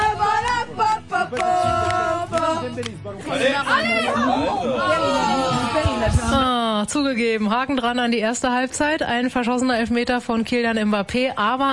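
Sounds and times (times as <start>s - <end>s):
football fans chattering in a bar: 0.0s - 6.9s
speech: 2.8s - 11.7s.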